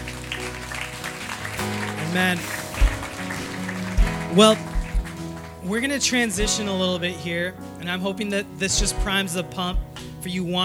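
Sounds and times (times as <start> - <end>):
audience applause: 0.0 - 6.4
sustained music chords: 0.0 - 10.6
speech: 2.1 - 2.6, 4.3 - 4.7, 5.6 - 10.6.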